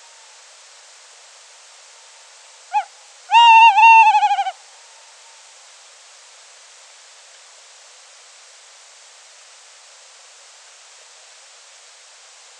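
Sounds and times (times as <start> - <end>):
tawny owl call: 2.7 - 4.8.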